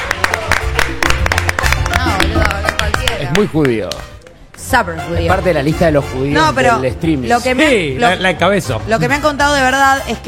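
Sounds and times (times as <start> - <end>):
audience applause at a comedy show: 0.0 - 3.9
speech: 3.3 - 4.1, 4.7 - 10.2.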